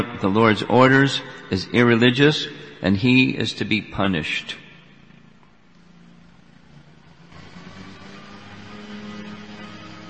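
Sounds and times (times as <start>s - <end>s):
speech: 0.0s - 4.6s
lawnmower running outside: 6.6s - 10.0s.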